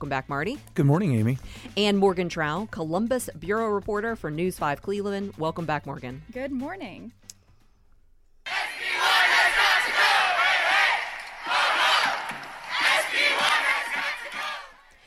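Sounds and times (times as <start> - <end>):
speech: 0.0 - 7.2
students and faculty chanting in protest in Ohio: 8.5 - 14.9.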